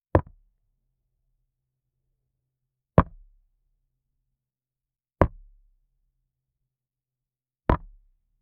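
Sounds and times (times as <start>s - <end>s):
tennis: 7.7s - 8.0s.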